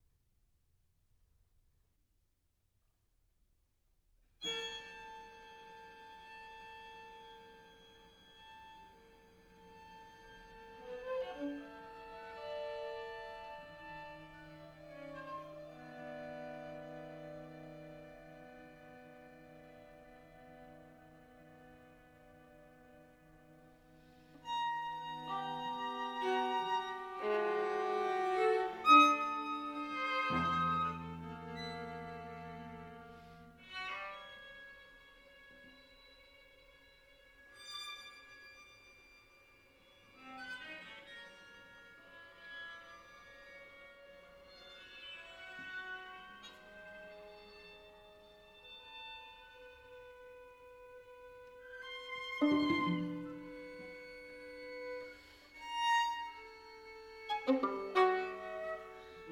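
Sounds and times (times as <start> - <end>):
string quartet playing: 9.7 - 22.4, 24.4 - 34.3, 44.4 - 59.3.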